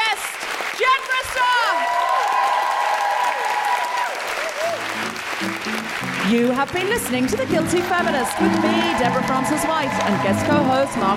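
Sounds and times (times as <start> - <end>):
audience applause: 0.0 - 11.1
whoops and high-pitched cheers: 0.8 - 5.2, 7.7 - 11.1
speech: 6.3 - 11.1.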